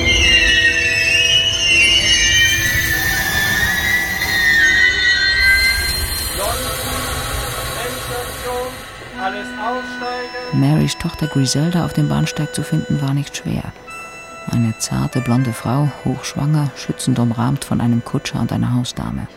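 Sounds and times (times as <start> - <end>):
train wheels squealing: 0.0 - 10.6
train arriving at station: 0.0 - 19.3
speech: 10.6 - 13.9, 14.5 - 19.3.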